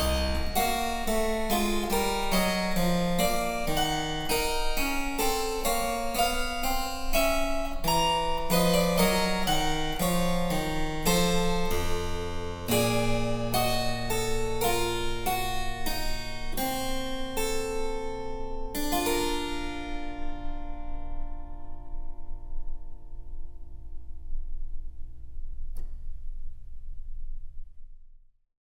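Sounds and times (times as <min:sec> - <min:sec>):
harpsichord: 0:00.0 - 0:20.3.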